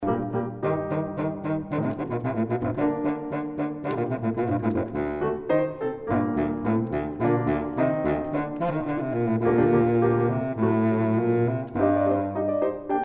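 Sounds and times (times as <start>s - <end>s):
big bassoon playing: 0.0s - 13.0s.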